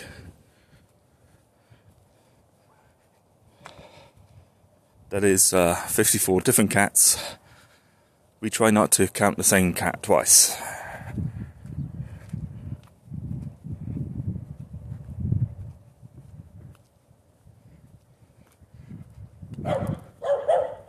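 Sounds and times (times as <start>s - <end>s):
speech: 5.1s - 7.4s, 8.4s - 11.3s
dog barking: 19.6s - 20.8s.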